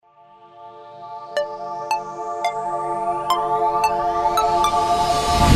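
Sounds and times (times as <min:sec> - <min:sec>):
plucked logo jingle: 0:01.4 - 0:05.4.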